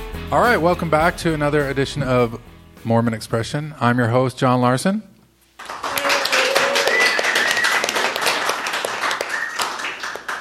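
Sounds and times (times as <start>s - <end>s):
speech: 0.3s - 5.1s
one person clapping without enthusiasm: 5.6s - 10.4s.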